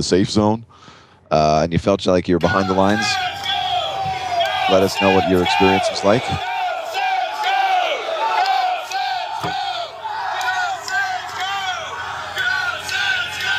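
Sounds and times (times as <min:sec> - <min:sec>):
speech: 0:00.0 - 0:03.3, 0:04.7 - 0:06.5
crowd cheering and whooping: 0:02.4 - 0:13.5.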